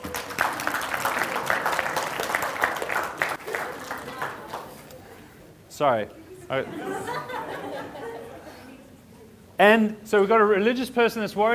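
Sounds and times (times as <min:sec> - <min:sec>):
congregation clapping to welcome a couple back from their honeymoon: 0:00.0 - 0:04.9
laughter: 0:03.4 - 0:04.6, 0:06.2 - 0:09.0
speech: 0:05.8 - 0:08.1, 0:09.6 - 0:11.5.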